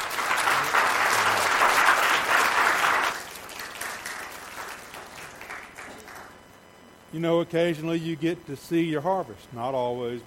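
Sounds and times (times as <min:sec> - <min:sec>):
church gathering audience applause welcoming a reverend: 0:00.0 - 0:06.4
speech: 0:07.1 - 0:10.2.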